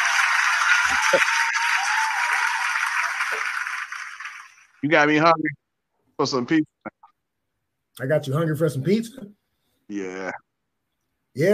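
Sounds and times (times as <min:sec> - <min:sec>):
hand clap sound effect: 0:00.0 - 0:04.5
speech: 0:00.9 - 0:01.4, 0:04.8 - 0:05.6, 0:06.2 - 0:06.7, 0:08.0 - 0:10.5, 0:11.4 - 0:11.5.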